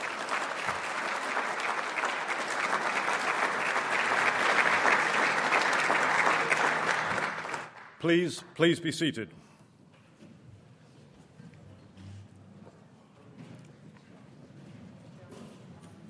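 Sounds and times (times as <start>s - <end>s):
audience applauding: 0.0s - 8.0s
speech: 8.0s - 9.4s.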